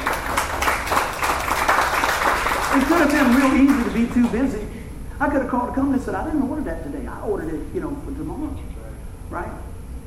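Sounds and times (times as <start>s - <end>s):
audience giving a hand clap: 0.0s - 4.6s
speech: 2.8s - 9.6s.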